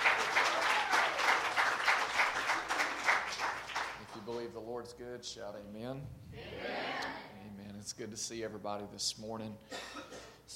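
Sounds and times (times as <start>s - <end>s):
audience hand clapping: 0.0s - 4.4s
speech: 4.6s - 10.5s.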